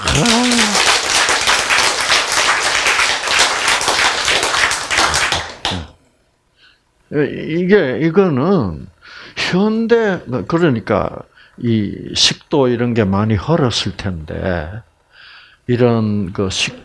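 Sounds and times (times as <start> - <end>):
audience clapping: 0.0 - 6.0
speech: 0.1 - 0.5, 7.1 - 14.9, 15.7 - 16.8.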